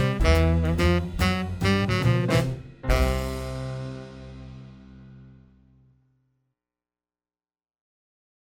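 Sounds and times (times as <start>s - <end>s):
swing tenor sax: 0.0s - 4.6s.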